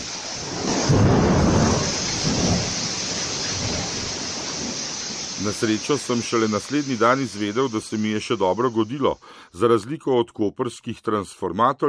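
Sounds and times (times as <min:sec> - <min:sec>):
thunder rumbling: 0:00.0 - 0:06.4
heavy rain downpour: 0:00.0 - 0:09.5
speech: 0:05.4 - 0:11.8.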